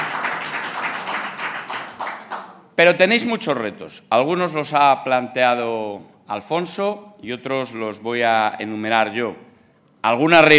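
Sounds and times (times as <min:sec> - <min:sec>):
audience applause for mayors and councillors at a public address: 0:00.0 - 0:02.8
speech: 0:02.8 - 0:10.5.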